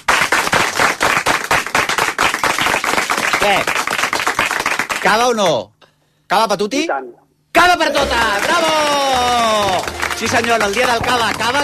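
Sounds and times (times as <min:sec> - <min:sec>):
audience applause: 0:00.0 - 0:05.0, 0:07.9 - 0:11.6
speech: 0:03.4 - 0:03.8, 0:05.0 - 0:05.7, 0:06.3 - 0:11.6
person cheering: 0:07.9 - 0:11.6.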